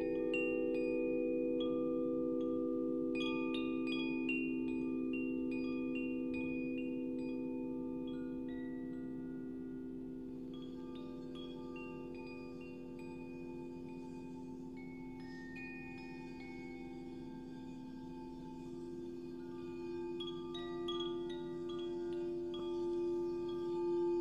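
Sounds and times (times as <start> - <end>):
singing bowl ringing for meditation: 0.0 - 24.1.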